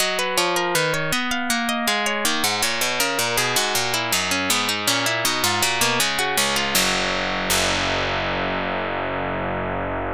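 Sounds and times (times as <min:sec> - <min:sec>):
electric duet: 0:00.0 - 0:10.0.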